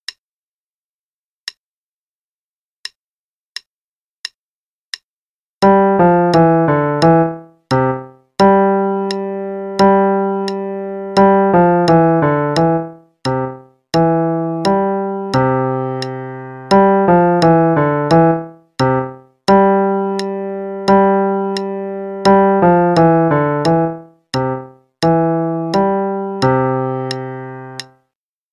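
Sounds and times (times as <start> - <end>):
piano playing a dance, left hand only: 5.6 - 28.0.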